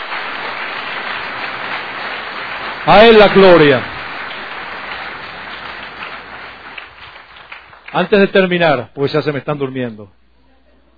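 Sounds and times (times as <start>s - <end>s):
audience applause: 0.0s - 8.6s
speech: 2.9s - 3.9s, 7.9s - 10.2s.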